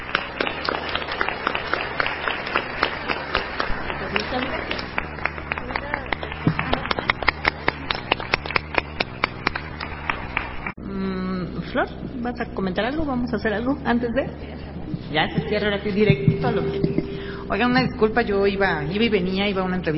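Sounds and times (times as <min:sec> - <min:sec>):
audience clapping: 0:00.0 - 0:10.8
speech: 0:04.4 - 0:04.9, 0:11.8 - 0:19.9.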